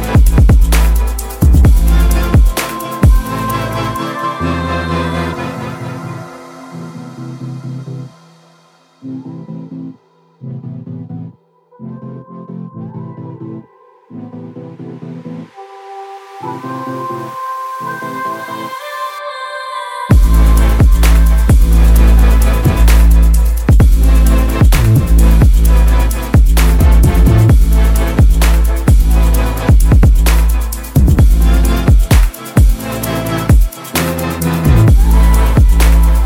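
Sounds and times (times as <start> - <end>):
future bass trap music: 0.0 - 8.2, 20.1 - 36.2.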